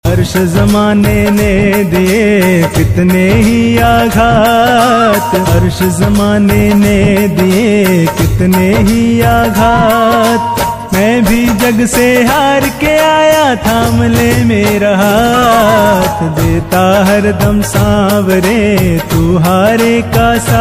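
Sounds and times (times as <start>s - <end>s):
Hindu devotional bhajan song: 0.0s - 20.5s.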